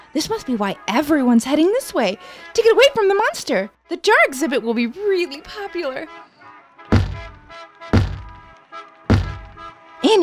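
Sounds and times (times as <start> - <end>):
speech: 0.1 - 6.2, 10.1 - 10.2
head bumping against car window: 6.9 - 8.5, 9.1 - 9.7.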